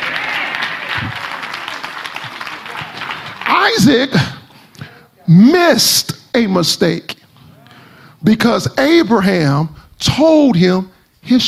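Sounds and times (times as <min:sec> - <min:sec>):
audience clapping hands: 0:00.0 - 0:04.7
speech: 0:03.7 - 0:04.3, 0:05.3 - 0:07.2, 0:08.2 - 0:11.4.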